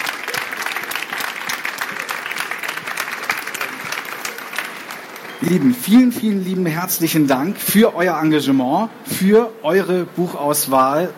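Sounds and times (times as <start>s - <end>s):
audience applause: 0.0s - 6.1s
speech: 5.4s - 11.1s.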